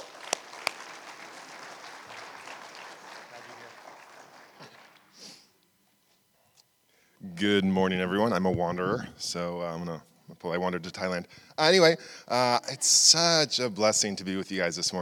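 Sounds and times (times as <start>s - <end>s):
audience applause welcoming a missionary speaker at a church service: 0.0s - 5.2s
speech: 7.4s - 14.9s.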